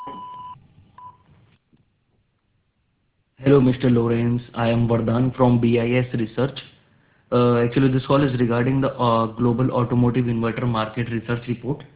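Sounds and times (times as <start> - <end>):
voicemail beep on a German mobile mailbox: 0.0 - 1.2
speech: 3.4 - 6.7, 7.3 - 11.9.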